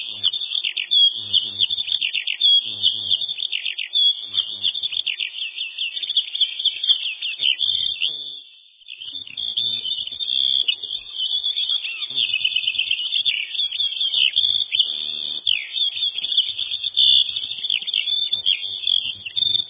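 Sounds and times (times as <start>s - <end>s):
Eurasian skylark Alauda arvensis song with rapid warble of trills and twitters: 0.0s - 19.6s.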